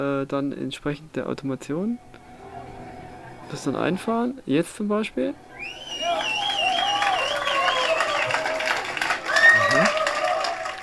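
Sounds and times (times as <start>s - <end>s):
speech: 0.0s - 2.2s, 3.5s - 5.8s
audience applause after a music piece: 5.6s - 10.8s.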